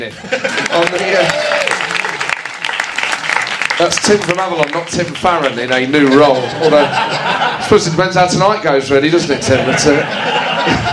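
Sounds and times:
speech: 0.0s - 1.9s, 3.8s - 10.9s
laughter: 0.0s - 2.2s, 5.6s - 10.9s
audience applause: 0.4s - 6.3s.

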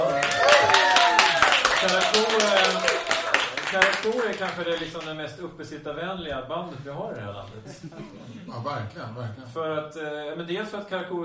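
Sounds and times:
voices cheering: 0.0s - 4.9s
crowd applause: 0.0s - 5.2s
speech: 1.8s - 3.0s, 3.7s - 11.2s.

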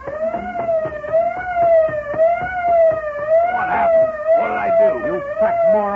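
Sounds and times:
faint rattling knocks: 0.0s - 4.4s
truck auto alarm siren: 0.0s - 5.9s.

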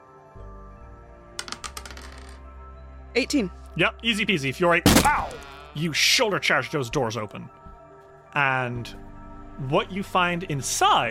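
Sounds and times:
dice being rolled: 1.4s - 2.4s
speech: 3.2s - 7.6s, 8.4s - 11.0s.

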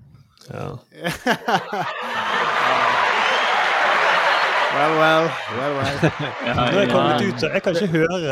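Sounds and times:
speech: 0.4s - 3.2s, 4.7s - 8.3s
laughter: 1.0s - 8.3s
applause sound effect: 2.0s - 7.9s.

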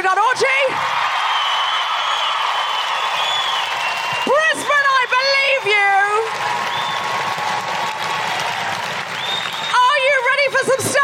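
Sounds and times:
audience clapping at a live stand-up comedy show in Brisbane: 0.8s - 11.0s.

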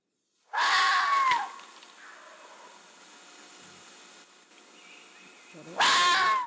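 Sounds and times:
female vixen fox screaming: 0.5s - 1.6s, 5.7s - 6.4s.

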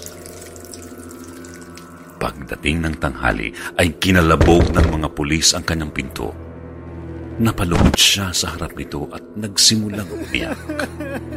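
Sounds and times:
water running from a tap in a bathroom: 0.0s - 2.2s
low hum: 0.1s - 8.0s
speech: 2.2s - 6.4s, 7.4s - 11.3s
laughter: 9.9s - 11.3s.

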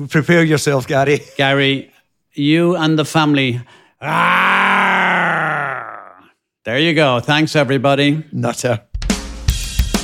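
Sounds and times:
speech: 0.0s - 4.9s, 6.6s - 8.9s
human growl: 4.0s - 6.3s.

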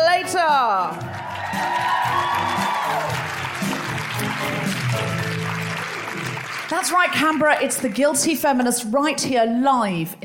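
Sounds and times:
live audience applause: 1.0s - 8.1s
whoops: 1.1s - 3.4s
speech: 6.7s - 10.2s.

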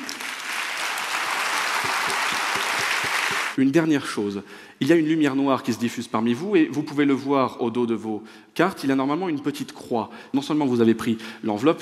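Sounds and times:
audience applause: 0.0s - 3.6s
sharp claps: 0.0s - 3.6s
speech: 3.6s - 11.8s.

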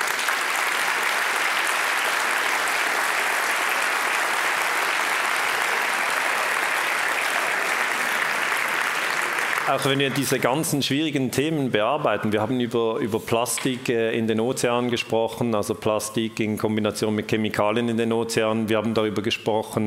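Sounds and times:
audience applause: 0.0s - 10.6s
speech: 9.7s - 19.8s.

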